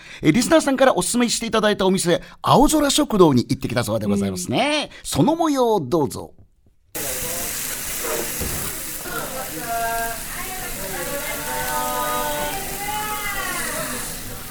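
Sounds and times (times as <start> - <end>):
speech: 0.2 - 6.4
beef sizzling on hot iron plate: 7.0 - 14.4
faint voices murmuring: 7.0 - 14.4.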